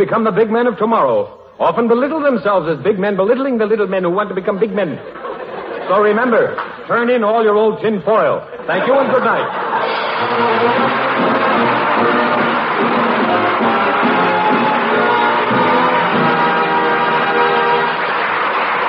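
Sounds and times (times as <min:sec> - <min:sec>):
speech: 0:00.0 - 0:05.3, 0:05.9 - 0:13.1
laughter: 0:04.4 - 0:06.9, 0:08.4 - 0:13.9
audience applause: 0:09.1 - 0:18.8.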